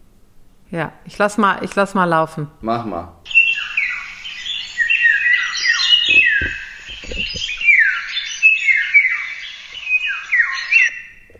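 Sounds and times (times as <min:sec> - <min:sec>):
speech: 0:00.7 - 0:03.2
bird singing a fluting whistled song: 0:03.3 - 0:11.3
low thumps: 0:05.9 - 0:07.8.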